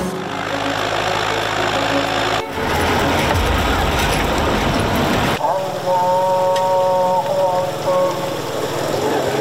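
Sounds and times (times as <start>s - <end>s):
village water master's motorcycle engine droning at dawn in Samarqandlik village, Botken: 0.1s - 9.3s
person narrating: 5.4s - 9.3s.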